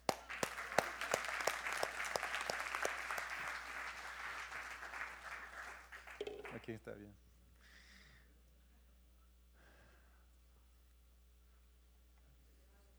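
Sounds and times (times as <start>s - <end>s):
audience applause: 0.0s - 6.7s
speech: 6.7s - 7.3s.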